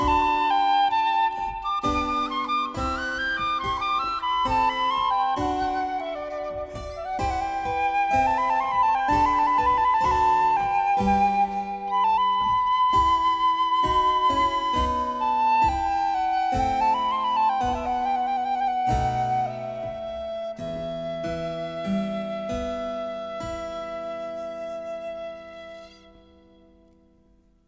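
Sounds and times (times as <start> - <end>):
piccolo: 0.0 - 27.0.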